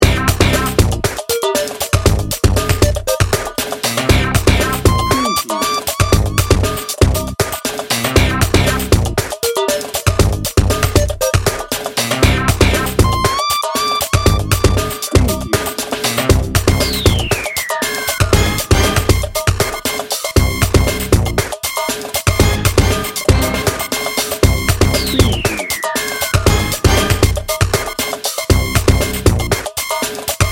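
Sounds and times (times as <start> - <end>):
industrial innovation music: 0.0 - 30.4.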